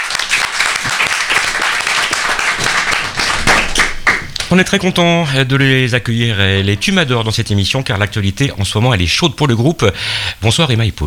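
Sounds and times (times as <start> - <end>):
crowd applause: 0.0 - 4.7
speech: 4.5 - 11.0.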